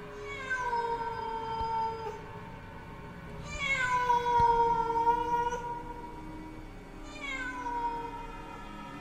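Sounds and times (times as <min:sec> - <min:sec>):
cat meowing mournfully at night: 0:00.1 - 0:02.4, 0:03.4 - 0:06.3, 0:07.0 - 0:08.7.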